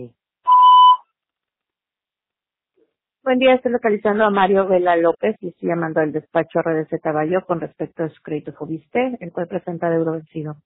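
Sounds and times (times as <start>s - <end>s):
speech: 0.0s - 0.2s, 3.2s - 10.6s
voicemail beep tone on a phone line: 0.5s - 1.0s.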